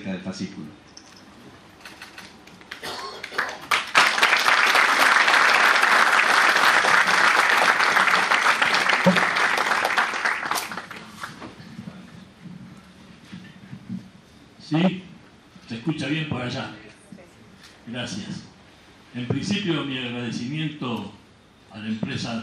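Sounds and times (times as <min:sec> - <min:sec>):
speech: 0:00.0 - 0:01.0, 0:14.7 - 0:15.0, 0:15.8 - 0:16.8, 0:17.9 - 0:18.5, 0:19.1 - 0:21.2, 0:21.8 - 0:22.4
audience applause: 0:02.7 - 0:11.3.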